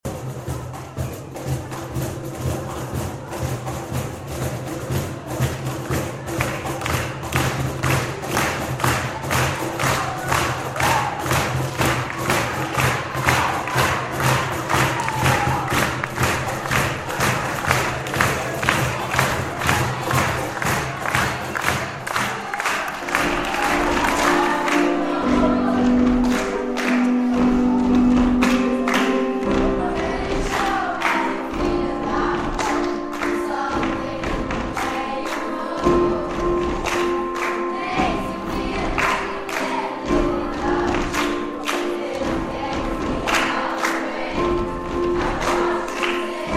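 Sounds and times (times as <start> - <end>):
drums: 0.0 - 46.5.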